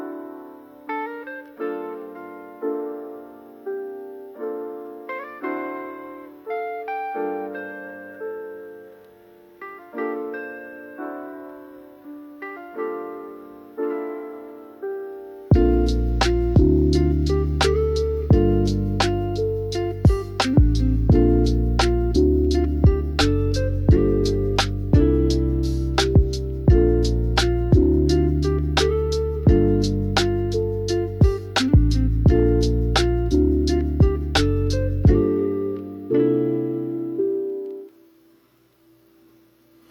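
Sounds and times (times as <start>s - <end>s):
chill lofi music: 0.0s - 38.0s.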